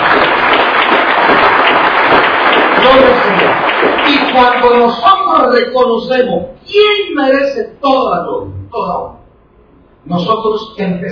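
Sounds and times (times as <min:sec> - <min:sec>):
church congregation clapping in praise: 0:00.0 - 0:05.4
speech: 0:04.4 - 0:09.1, 0:10.0 - 0:11.1.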